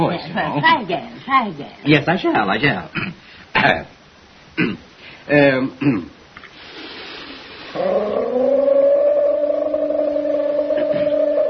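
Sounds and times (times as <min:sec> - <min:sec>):
speech: 0:00.0 - 0:04.0, 0:04.6 - 0:06.2, 0:07.8 - 0:08.7
voice imitating a leopard cry: 0:07.8 - 0:11.4.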